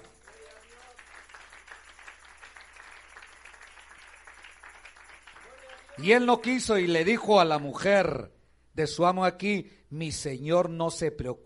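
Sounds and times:
crowd applauding: 0:00.0 - 0:07.8
speech: 0:06.0 - 0:11.4.

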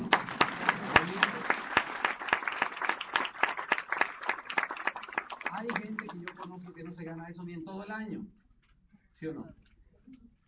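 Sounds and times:
audience applause: 0:00.0 - 0:06.8
speech: 0:09.2 - 0:09.6.

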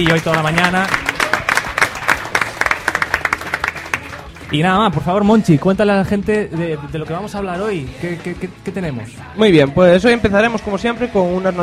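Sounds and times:
speech: 0:00.0 - 0:01.0, 0:04.5 - 0:11.6
audience applause: 0:00.0 - 0:04.6.

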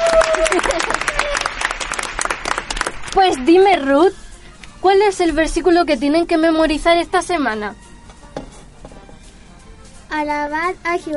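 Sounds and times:
voices cheering: 0:00.0 - 0:01.8
group applause: 0:00.0 - 0:03.6
speech: 0:03.1 - 0:04.2, 0:04.8 - 0:07.8, 0:10.1 - 0:11.1.

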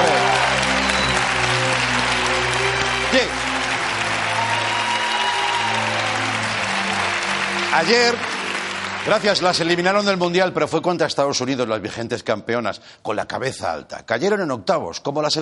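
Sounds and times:
audience applause: 0:00.0 - 0:10.4
speech: 0:07.8 - 0:08.4, 0:09.0 - 0:15.4.

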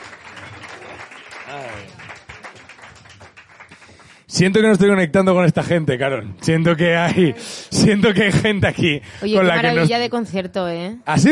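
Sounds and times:
audience applause: 0:00.0 - 0:04.3
speech: 0:01.5 - 0:02.2, 0:04.4 - 0:11.2.

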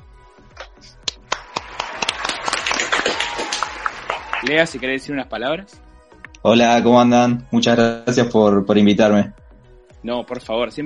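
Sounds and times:
audience applause: 0:01.3 - 0:04.8
speech: 0:04.4 - 0:05.8, 0:06.4 - 0:09.4, 0:10.0 - 0:10.8.

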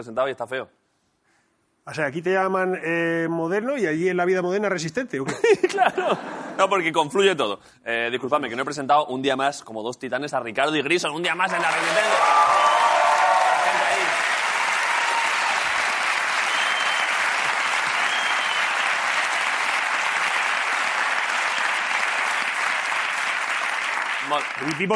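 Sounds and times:
speech: 0:00.0 - 0:00.8, 0:01.8 - 0:12.6, 0:24.6 - 0:24.9
loud sustained audience applause: 0:11.5 - 0:24.9.

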